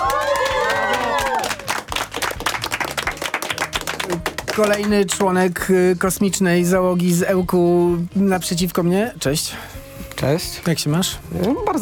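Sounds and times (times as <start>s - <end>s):
high excited shouts and whoops: 0.0s - 1.7s
crowd applause: 0.0s - 5.2s
speech: 4.6s - 11.7s.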